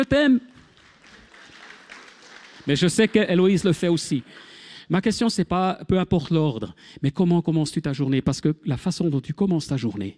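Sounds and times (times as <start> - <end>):
speech: 0.0 - 0.5, 2.6 - 10.1
crowd applauding: 0.0 - 4.7.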